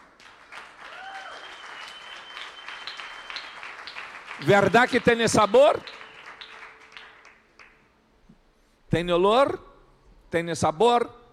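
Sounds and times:
applause: 0.0s - 8.0s
speech: 4.4s - 5.9s, 8.9s - 9.7s, 10.3s - 11.2s.

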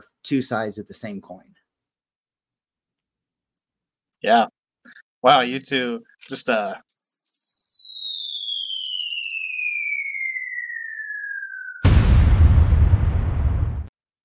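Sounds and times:
speech: 0.2s - 1.6s, 4.2s - 4.6s, 5.2s - 6.9s
descending whistling tone: 6.9s - 12.0s
explosion blast with a deep rumble: 11.0s - 13.9s.

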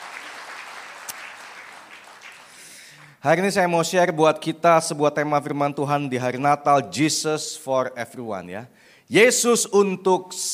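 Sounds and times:
congregation applauding at a Christmas church service: 0.0s - 3.2s
speech: 3.2s - 10.5s.

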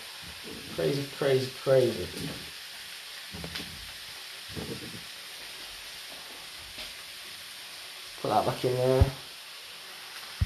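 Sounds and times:
onions sizzling in a frying pan: 0.0s - 10.4s
speech: 0.4s - 2.5s, 8.3s - 9.2s.

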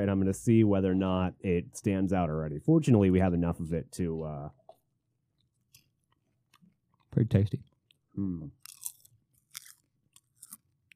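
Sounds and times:
speech: 0.0s - 4.6s, 7.1s - 8.6s
popcorn being chewed: 8.5s - 10.9s.

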